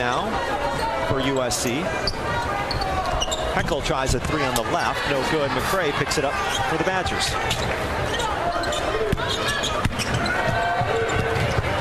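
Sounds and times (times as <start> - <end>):
speech: 0.0 - 0.5, 1.1 - 2.6, 3.6 - 8.3
crowd noise at a women's college basketball game: 0.0 - 11.8
basketball dribbled on a court: 9.0 - 11.8.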